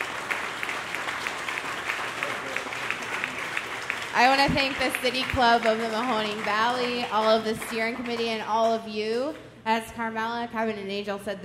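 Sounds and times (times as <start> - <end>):
audience applause: 0.0 - 8.4
speech: 4.2 - 11.4.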